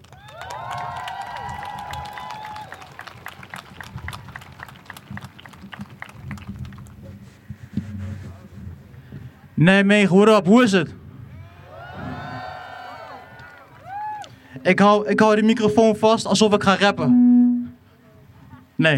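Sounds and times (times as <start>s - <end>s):
high whoops and cheers: 0.0s - 3.4s, 11.3s - 14.4s
crowd applause: 0.0s - 7.2s, 11.6s - 14.3s
speech: 9.6s - 11.0s, 14.7s - 17.2s, 18.8s - 18.9s.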